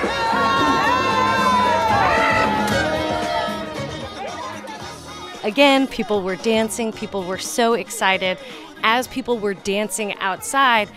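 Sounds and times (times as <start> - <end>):
crowd cheering outdoors: 0.0 - 5.4
speech: 5.5 - 10.9.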